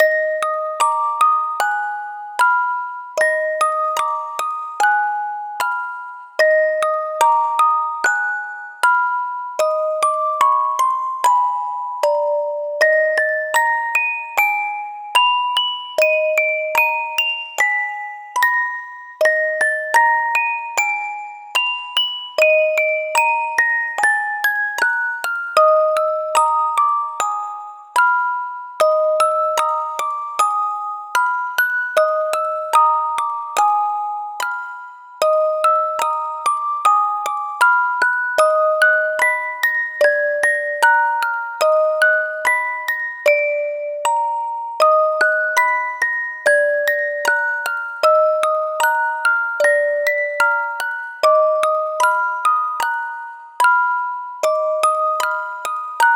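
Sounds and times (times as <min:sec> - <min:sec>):
horror music box lullaby: 0:00.0 - 0:56.1.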